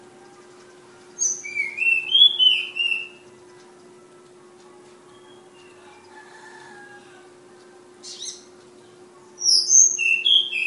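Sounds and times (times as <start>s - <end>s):
flowerpecker singing: 0.0s - 4.0s, 5.1s - 7.2s, 8.0s - 8.6s, 9.4s - 10.6s.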